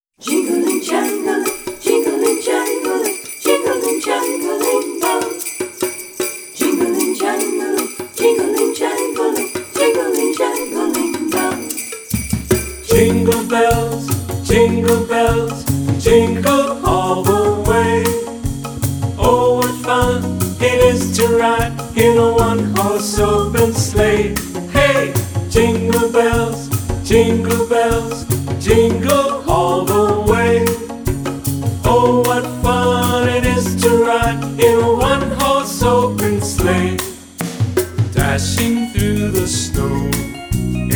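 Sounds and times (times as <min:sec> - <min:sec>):
Christmas song: 0:00.1 - 0:40.9.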